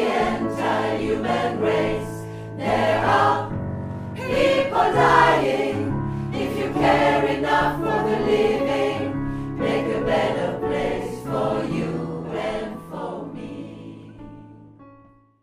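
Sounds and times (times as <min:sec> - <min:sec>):
voices singing a verse in unison: 0:00.0 - 0:03.6, 0:04.2 - 0:14.4.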